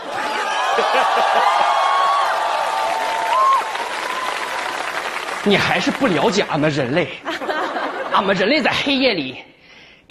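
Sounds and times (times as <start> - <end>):
laughter: 0.0 - 2.2, 7.1 - 8.4
loud audience applause: 0.0 - 6.8
speech: 5.5 - 7.4, 8.2 - 9.5.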